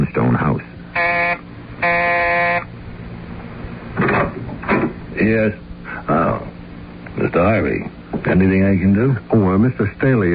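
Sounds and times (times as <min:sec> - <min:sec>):
speech: 0:00.1 - 0:00.7, 0:05.2 - 0:06.5, 0:07.2 - 0:10.3
doorbell buzzer: 0:00.9 - 0:02.7
short noisy rattle: 0:03.9 - 0:05.2.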